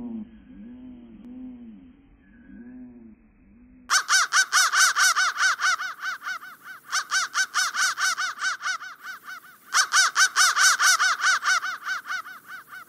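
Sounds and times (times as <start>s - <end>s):
crow cawing: 3.9s - 12.8s.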